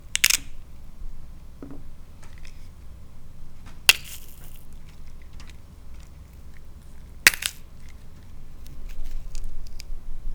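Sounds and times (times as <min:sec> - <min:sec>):
celery cracking: 0:03.9 - 0:09.8.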